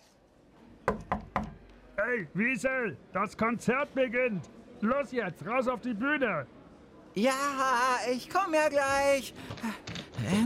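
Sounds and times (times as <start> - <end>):
nervous knocks on a backstage dressing room door at a concert: 0.8 - 1.6
speech: 2.1 - 6.6, 7.2 - 10.4.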